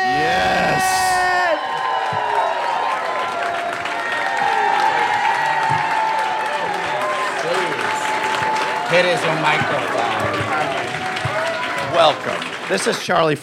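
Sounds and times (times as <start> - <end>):
audience whooping: 0.0 - 13.0
audience clapping at a live storytelling show in Baltimore: 0.6 - 13.4
speech: 8.9 - 10.0, 12.0 - 13.4.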